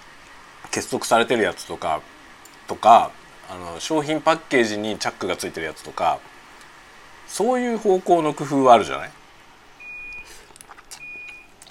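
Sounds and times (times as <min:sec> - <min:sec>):
speech: 0:00.6 - 0:06.3, 0:07.3 - 0:09.2
dishwasher finished signal beeps: 0:09.8 - 0:10.3, 0:11.0 - 0:11.6.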